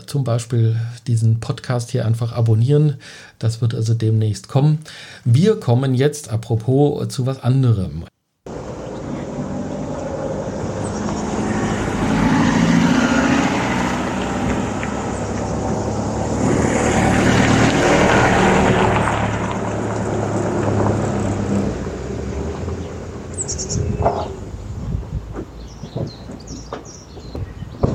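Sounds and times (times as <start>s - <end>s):
speech: 0.1s - 8.1s
low engine hum: 8.5s - 26.6s
tires of two limousines rolling over gravel: 8.5s - 27.8s.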